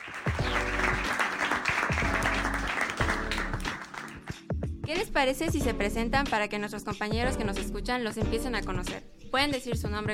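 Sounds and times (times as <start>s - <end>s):
applause: 0.0s - 4.5s
speech: 4.9s - 10.1s.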